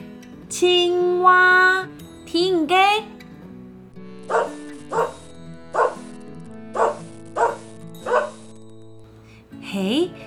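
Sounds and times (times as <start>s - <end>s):
speech: 0.5s - 3.2s
dog barking: 4.3s - 6.0s, 6.8s - 8.4s.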